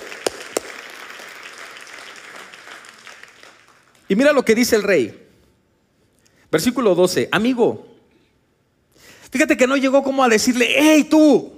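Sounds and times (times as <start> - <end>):
audience applauding together: 0.0 - 4.1
speech: 4.1 - 5.2, 6.5 - 7.9, 9.3 - 11.5.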